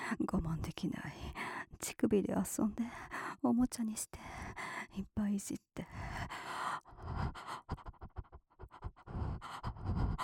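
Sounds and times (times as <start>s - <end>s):
speech: 0.1s - 6.5s
heavy panting breathing: 6.0s - 10.2s.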